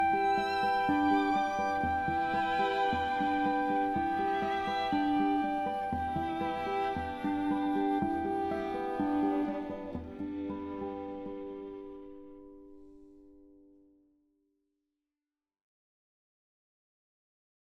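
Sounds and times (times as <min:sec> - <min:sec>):
string quartet: 0:00.0 - 0:11.3
flute: 0:00.0 - 0:11.6
guitar: 0:00.0 - 0:14.0.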